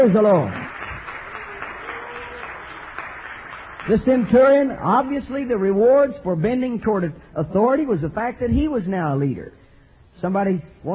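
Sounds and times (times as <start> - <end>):
speech: 0.0 - 0.6, 3.8 - 9.6, 10.2 - 10.9
congregation clapping hands in church during worship: 0.0 - 6.1.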